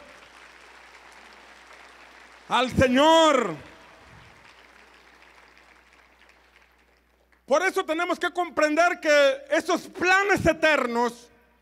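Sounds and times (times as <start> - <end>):
audience applause: 0.0 - 7.4
speech: 2.5 - 3.7, 7.5 - 11.3.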